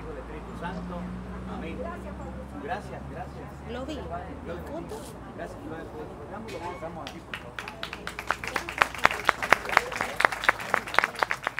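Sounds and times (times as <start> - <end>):
faint murmuring voices: 0.0 - 11.5
speech: 0.6 - 8.2
audience applause: 7.0 - 11.5.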